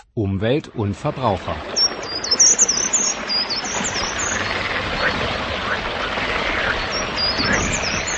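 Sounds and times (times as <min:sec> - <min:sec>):
speech: 0:00.2 - 0:01.8
birdsong: 0:01.6 - 0:08.1.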